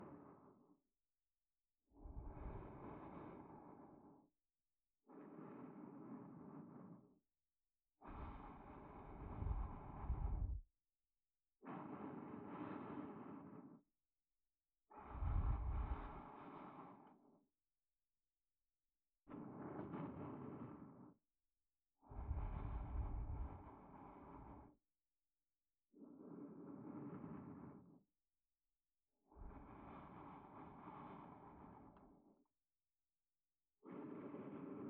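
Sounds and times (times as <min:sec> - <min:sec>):
sleep aid loop in left channel: 0:00.0 - 0:00.8, 0:01.8 - 0:04.4, 0:05.0 - 0:07.3, 0:07.9 - 0:10.6, 0:11.6 - 0:13.9, 0:14.8 - 0:17.5, 0:19.3 - 0:21.2, 0:21.9 - 0:24.9, 0:25.8 - 0:28.1, 0:29.1 - 0:32.6, 0:33.6 - 0:34.8.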